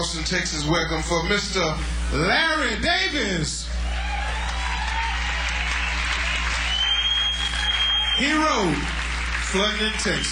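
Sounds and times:
speech: 0:00.1 - 0:03.8, 0:08.2 - 0:10.3
audience applause: 0:03.9 - 0:10.3.

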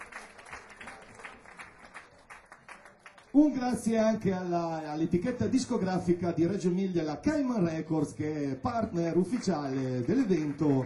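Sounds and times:
audience applause: 0:00.0 - 0:03.4, 0:09.0 - 0:10.8
speech: 0:03.3 - 0:10.8.

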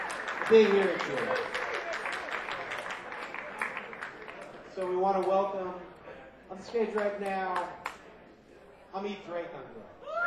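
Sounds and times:
audience applause at a live music performance: 0:00.0 - 0:04.7
speech: 0:00.5 - 0:01.6, 0:04.8 - 0:07.8, 0:08.9 - 0:10.0.

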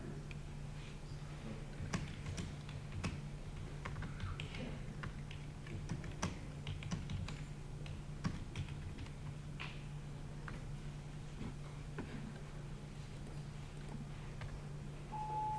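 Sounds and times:
low steady hum: 0:00.0 - 0:15.5
computer keyboard typing to edit a wiki page: 0:01.7 - 0:09.2.

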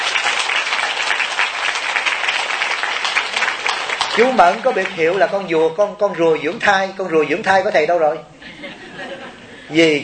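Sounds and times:
audience applause: 0:00.0 - 0:05.7
speech: 0:04.2 - 0:08.8, 0:09.7 - 0:10.0
laughter: 0:08.3 - 0:09.8.

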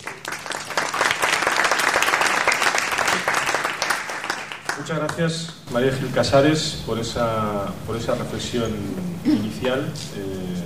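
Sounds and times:
audience applause: 0:00.0 - 0:05.2
speech: 0:04.8 - 0:10.6.

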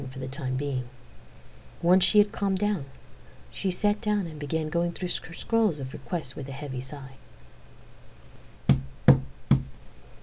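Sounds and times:
speech: 0:00.1 - 0:01.0, 0:01.8 - 0:07.2
knocking on a door: 0:08.7 - 0:09.8.

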